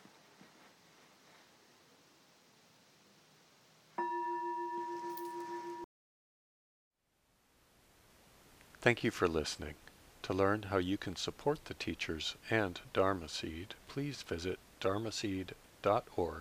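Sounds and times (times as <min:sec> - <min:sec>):
meditation bell ringing: 0:04.0 - 0:05.8
speech: 0:08.8 - 0:16.3.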